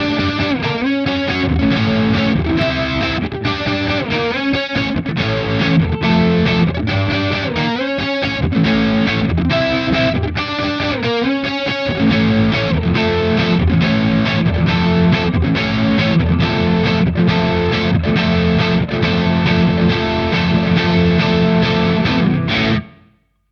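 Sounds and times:
Harley Benton guitar bridge pickup crunch: 0.0s - 23.4s.

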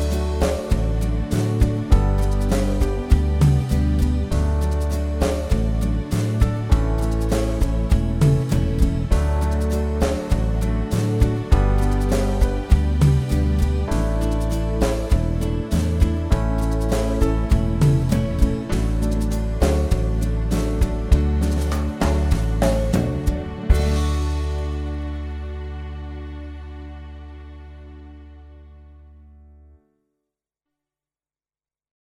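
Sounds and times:
Ketron SD 90 Latin Lounge style: 0.0s - 25.2s.

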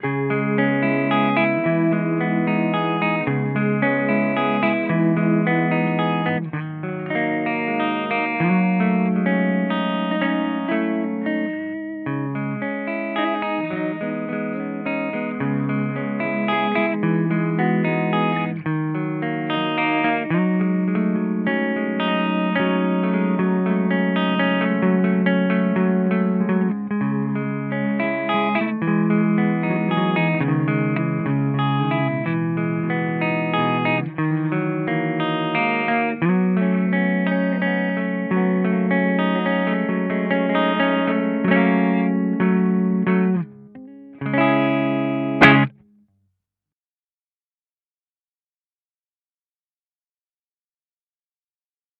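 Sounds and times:
Cort bass through Peavey amp, clean: 0.0s - 45.8s.

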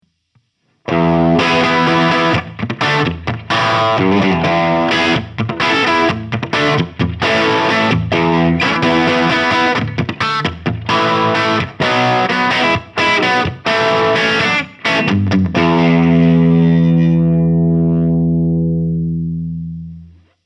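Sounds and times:
electric guitar through Sound City Master One Hundred amp with humbucker: 0.8s - 20.4s.

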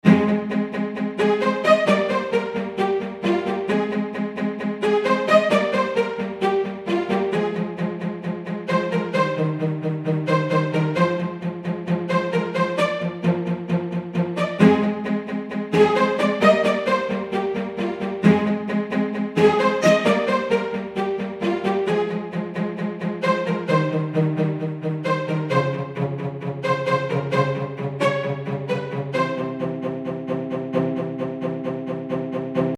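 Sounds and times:
spiccato string bowing: 0.0s - 32.7s.

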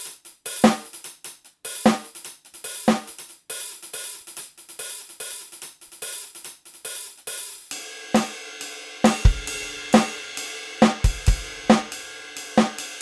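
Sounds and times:
Millenium NonaPad electronic drum pad modern pop kit: 0.5s - 0.9s, 1.8s - 2.1s, 2.9s - 3.1s, 9.0s - 10.2s, 10.8s - 12.0s, 12.6s - 13.0s.

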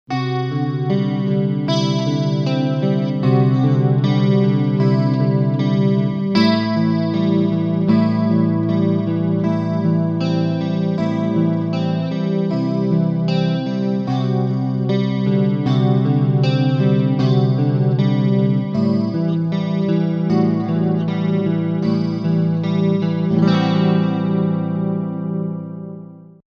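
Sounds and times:
electric guitar front single-coil pickup: 0.1s - 26.4s.

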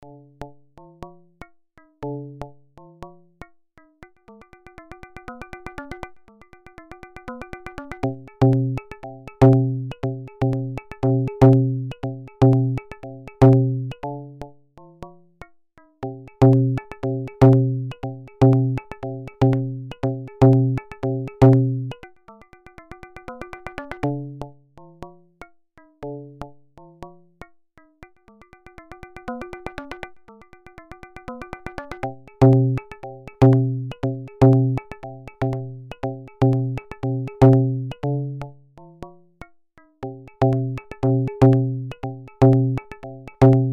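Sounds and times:
hand drums: 8.4s - 13.9s, 16.1s - 21.9s, 30.8s - 38.0s, 40.0s - 43.7s.

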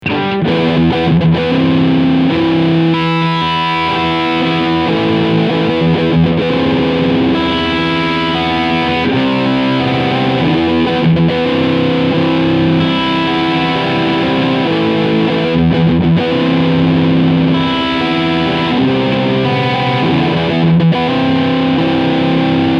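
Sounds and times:
guitar riff on bridge pickup: 0.0s - 22.7s.

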